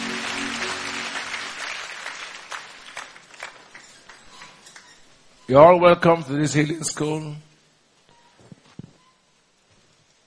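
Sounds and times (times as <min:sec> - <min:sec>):
audience applause in a church: 0:00.0 - 0:04.3
speech: 0:05.5 - 0:07.5.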